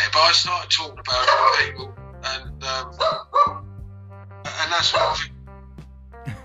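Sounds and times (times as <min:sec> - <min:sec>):
speech: 0:00.2 - 0:03.3, 0:04.7 - 0:05.3
dog barking: 0:02.9 - 0:03.6.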